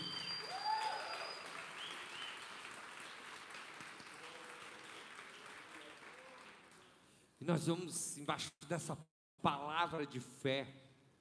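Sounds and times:
high whistle-like tone: 0:00.0 - 0:02.3
audience applauding: 0:00.0 - 0:07.0
speech: 0:07.4 - 0:10.8.

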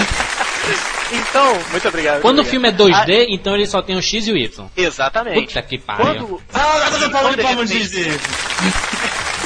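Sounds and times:
applause: 0:00.0 - 0:02.3, 0:07.9 - 0:09.4
people talking and laughing: 0:00.0 - 0:03.1, 0:05.4 - 0:09.4
speech: 0:00.7 - 0:09.4.

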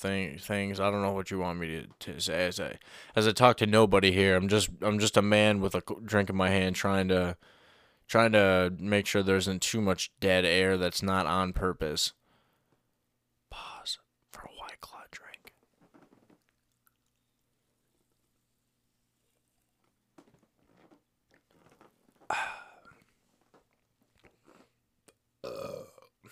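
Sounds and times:
speech: 0:00.0 - 0:12.2, 0:13.5 - 0:14.0
burp after drinking White Claw hard seltzer: 0:22.3 - 0:22.9, 0:25.4 - 0:26.3.

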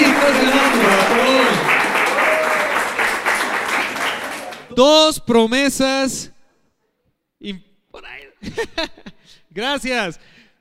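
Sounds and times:
audience applause: 0:00.0 - 0:04.8
speech: 0:04.8 - 0:06.3, 0:07.4 - 0:10.4
laughter: 0:08.4 - 0:09.1.

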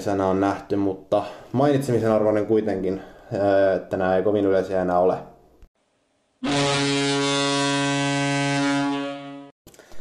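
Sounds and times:
speech: 0:00.0 - 0:05.3, 0:06.4 - 0:06.9
buzzer marking end of episode: 0:06.4 - 0:09.6.

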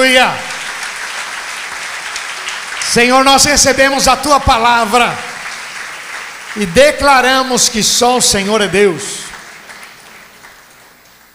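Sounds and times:
speech: 0:00.0 - 0:00.5, 0:02.9 - 0:05.3, 0:06.6 - 0:09.2
audience applauding: 0:00.0 - 0:11.3.

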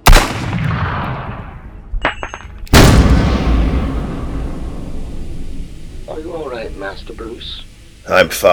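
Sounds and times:
gunshots in a Batman drama: 0:00.0 - 0:01.8, 0:02.7 - 0:07.0
speech: 0:06.2 - 0:08.5.

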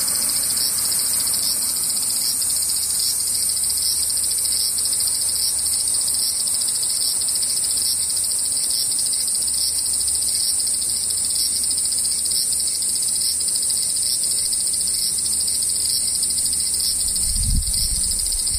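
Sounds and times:
cicadas droning: 0:00.0 - 0:18.5.

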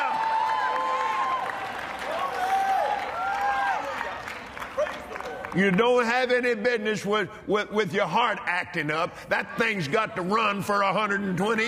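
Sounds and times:
church audience clapping: 0:00.0 - 0:06.0
speech: 0:05.5 - 0:11.6.

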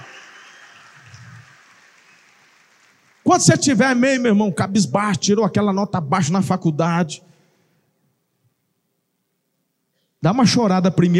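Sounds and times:
audience applauding: 0:00.0 - 0:04.0
speech: 0:03.3 - 0:07.3, 0:10.2 - 0:11.1.

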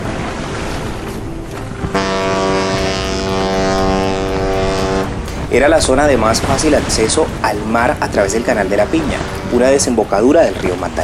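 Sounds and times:
loud sustained low ship's horn blast: 0:00.0 - 0:11.0
steady rushing wind at sea: 0:02.4 - 0:11.0
speech: 0:05.5 - 0:11.0.

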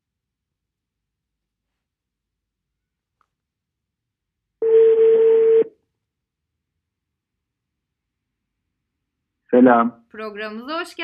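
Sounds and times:
telephone ringback tone: 0:04.6 - 0:05.7
speech: 0:09.5 - 0:11.0.

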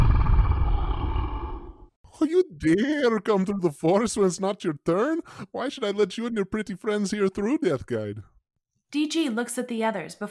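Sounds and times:
small creature growling: 0:00.0 - 0:01.9
speech: 0:02.2 - 0:08.3, 0:08.9 - 0:10.2.

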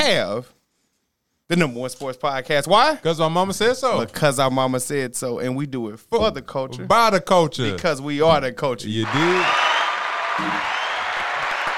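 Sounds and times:
speech: 0:00.0 - 0:00.6, 0:01.5 - 0:09.7, 0:10.4 - 0:10.8
group applause: 0:09.0 - 0:11.7.

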